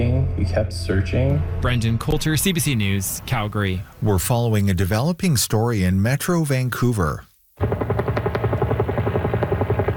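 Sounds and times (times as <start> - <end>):
speech: 0.4 - 7.3
helicopter dropping water on a wildfire in Belcarra Regional Park: 7.6 - 9.9.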